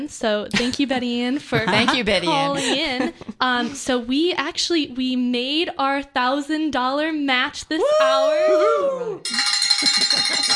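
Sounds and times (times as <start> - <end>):
speech: 0.0 - 10.5
celebratory bell ringing: 9.3 - 10.5.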